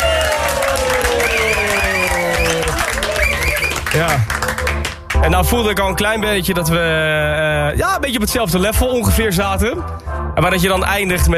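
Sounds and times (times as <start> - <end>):
audience applause: 0.0 - 5.2
speech: 3.9 - 4.4, 5.2 - 11.3.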